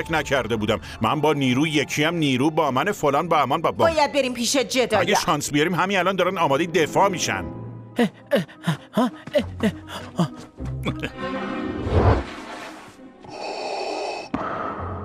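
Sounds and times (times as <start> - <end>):
speech: 0.0 - 12.4
heavy breathing: 8.0 - 10.5, 13.2 - 15.0.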